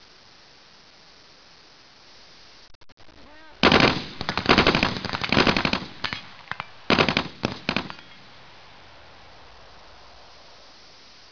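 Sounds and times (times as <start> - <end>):
gunshot: 3.6 - 8.3.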